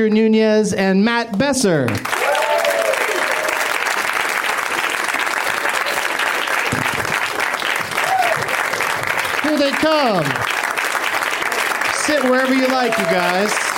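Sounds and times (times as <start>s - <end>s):
speech: 0.0s - 2.2s, 9.6s - 10.6s, 12.0s - 13.7s
audience applause at a UCB comedy show welcoming guests: 1.9s - 13.7s.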